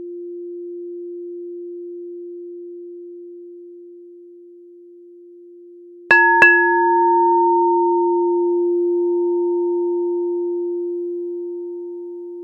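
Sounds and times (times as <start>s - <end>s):
crystal singing bowl humming: 6.1s - 12.4s.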